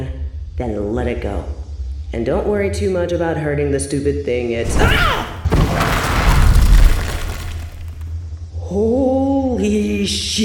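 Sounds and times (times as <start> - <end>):
speech: 0.6 - 5.8, 8.7 - 10.4
training dummy exploding from a blast of power: 4.6 - 8.0
crackling debris: 4.7 - 8.2.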